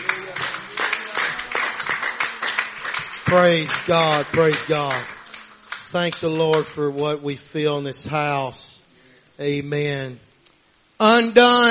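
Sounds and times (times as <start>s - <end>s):
audience clapping hands: 0.0s - 7.3s
speech: 3.3s - 5.1s, 5.9s - 8.6s, 9.4s - 10.3s, 11.0s - 11.7s.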